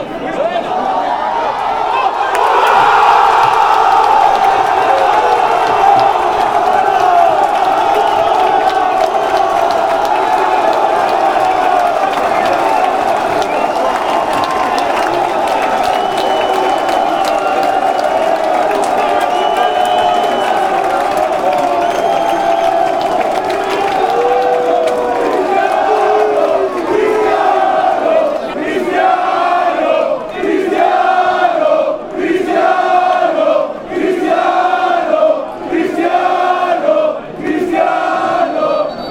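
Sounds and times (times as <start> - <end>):
fans chanting for a goal: 0.0 - 39.0.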